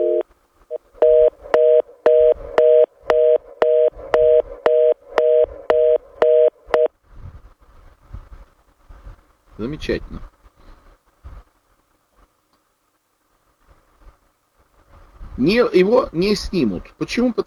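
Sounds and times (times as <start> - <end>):
pulsing telephone line tone: 0.0 - 6.9
faint low rumbling noise: 0.0 - 17.4
speech: 9.6 - 10.3, 15.4 - 17.4.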